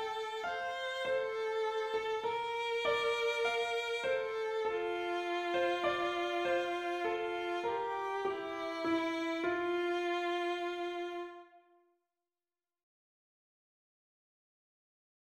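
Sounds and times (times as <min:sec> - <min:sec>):
melody with harmony: 0:00.0 - 0:11.0.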